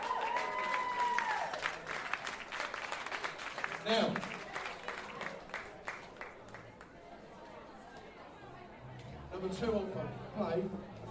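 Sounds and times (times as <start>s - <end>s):
rising then falling shout: 0.0s - 1.6s
crowd clapping and cheering: 0.0s - 7.2s
speech: 3.8s - 4.3s, 9.4s - 11.0s.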